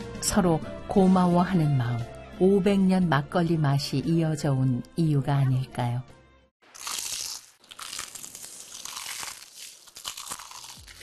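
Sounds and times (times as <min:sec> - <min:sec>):
speech: 0:00.2 - 0:06.2
crunchy bite and chewing of crispy fried chicken: 0:06.6 - 0:11.0.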